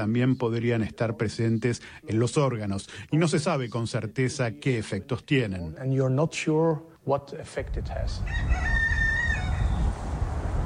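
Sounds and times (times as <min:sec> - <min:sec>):
speech: 0:00.0 - 0:08.9
low rumble of wind: 0:07.6 - 0:10.6
rooster crowing: 0:08.2 - 0:10.0.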